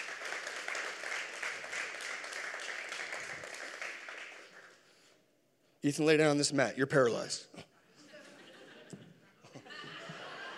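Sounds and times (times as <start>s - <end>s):
crowd applauding: 0.0s - 4.9s
speech: 5.8s - 7.6s
laughter: 7.9s - 10.5s.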